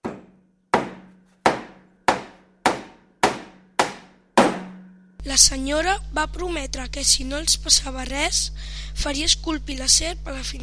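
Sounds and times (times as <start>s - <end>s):
hammering nails into a wooden door: 0.0s - 4.8s
speech: 5.2s - 10.6s.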